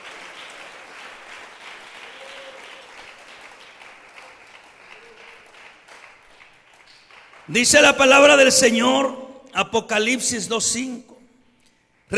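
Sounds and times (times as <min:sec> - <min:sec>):
audience applause: 0:00.0 - 0:09.6
speech: 0:07.5 - 0:11.1.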